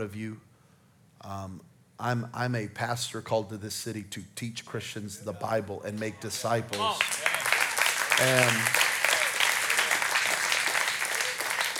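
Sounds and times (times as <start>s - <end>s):
speech: 0.0s - 0.5s, 1.2s - 7.2s, 8.2s - 8.9s
church congregation applauding during a Sunday sermon: 6.4s - 11.7s.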